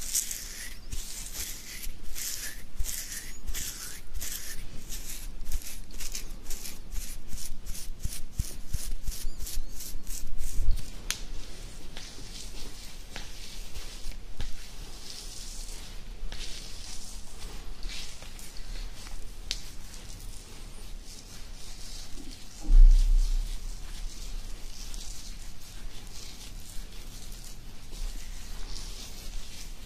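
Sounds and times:
beard scratching: 0.0s - 10.9s, 12.0s - 29.8s
thump: 22.6s - 23.7s.

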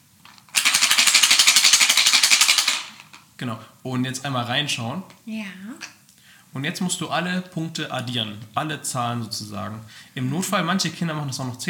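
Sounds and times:
four dice shaken hard in a container: 0.5s - 3.2s
speech: 3.4s - 5.9s, 6.5s - 11.6s.

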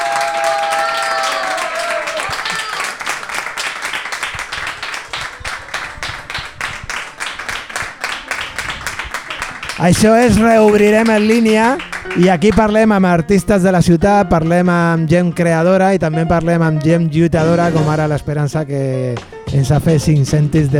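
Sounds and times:
audience applause: 0.0s - 12.9s
speech: 9.8s - 20.7s.

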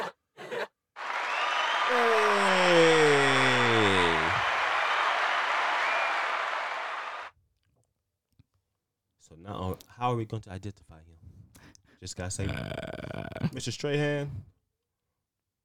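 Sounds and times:
crowd applause sound effect: 1.0s - 7.3s
falling whoop-like tone: 1.0s - 7.3s
speech: 1.9s - 2.3s, 10.1s - 11.2s, 12.0s - 14.5s.

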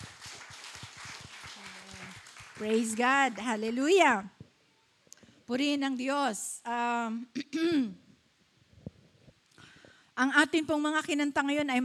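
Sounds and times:
audience clapping: 0.0s - 3.8s
speech: 2.6s - 4.4s, 5.5s - 8.0s, 10.2s - 11.8s.

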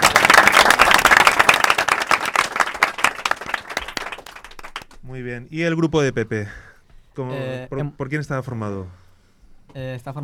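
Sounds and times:
audience applause: 0.0s - 5.0s
speech: 5.2s - 9.0s, 9.7s - 10.2s.

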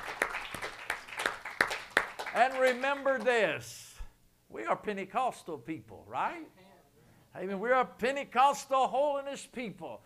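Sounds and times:
audience clapping hands in praise: 0.0s - 3.5s
speech: 2.4s - 3.8s, 4.5s - 6.6s, 7.3s - 10.0s.

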